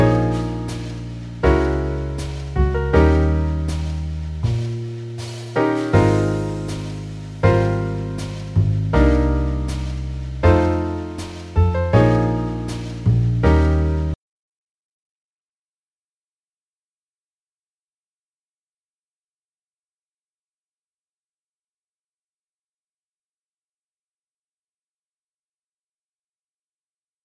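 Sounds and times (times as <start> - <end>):
jazz piano play-along in A flat: 0.0 - 14.2.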